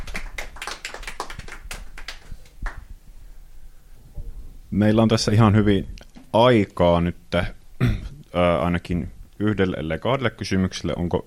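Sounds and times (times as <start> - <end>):
audience applause: 0.0 - 2.8
speech: 4.7 - 11.2.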